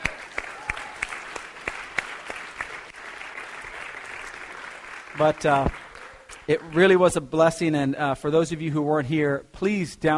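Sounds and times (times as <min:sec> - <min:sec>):
audience applause: 0:00.0 - 0:07.1
speech: 0:05.2 - 0:05.8, 0:06.5 - 0:10.1.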